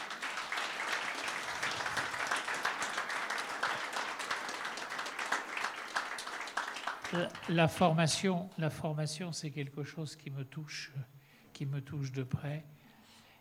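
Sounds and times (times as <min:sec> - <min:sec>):
audience applauding: 0:00.0 - 0:07.9
speech: 0:07.1 - 0:12.8.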